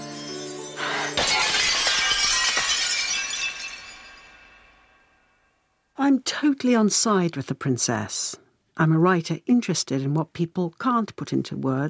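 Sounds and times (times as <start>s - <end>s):
tinkling glass shards: 0.0s - 5.2s
glass shattering: 0.0s - 5.5s
speech: 6.1s - 11.8s.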